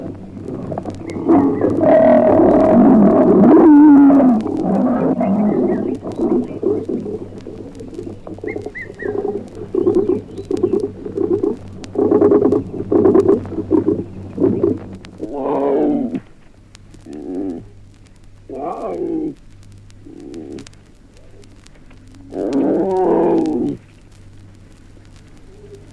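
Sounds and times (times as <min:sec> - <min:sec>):
animal low harmonic moaning cries: 0:00.6 - 0:16.3, 0:17.0 - 0:17.7, 0:18.5 - 0:19.4, 0:22.3 - 0:23.8.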